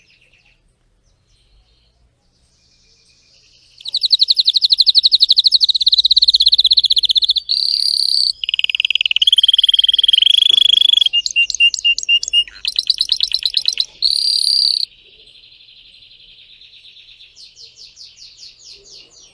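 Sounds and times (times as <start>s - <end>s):
Spanish Timbrado canary trilling: 3.8s - 14.9s.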